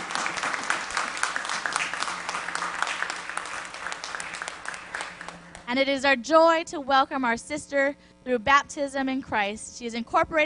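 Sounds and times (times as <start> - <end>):
church congregation clapping to welcome a newly baptized member: 0.0 - 5.7
speech: 5.7 - 10.4.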